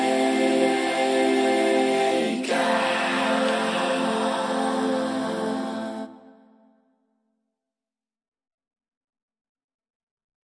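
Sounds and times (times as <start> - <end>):
vocoded a cappella vocals: 0.0 - 6.8.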